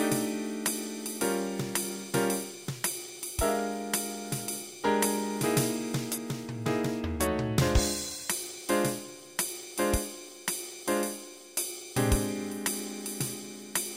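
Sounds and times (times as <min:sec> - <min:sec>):
swing music without bass: 0:00.0 - 0:09.2, 0:12.0 - 0:13.9.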